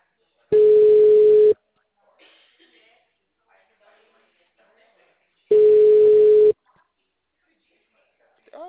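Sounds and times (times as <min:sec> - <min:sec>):
telephone ringback tone while a call is being placed: 0:00.6 - 0:01.6, 0:05.5 - 0:06.6.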